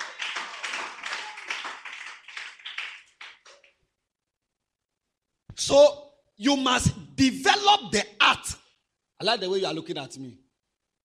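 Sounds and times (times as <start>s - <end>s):
audience clapping: 0.0s - 3.8s
speech: 5.6s - 8.6s, 9.2s - 10.4s.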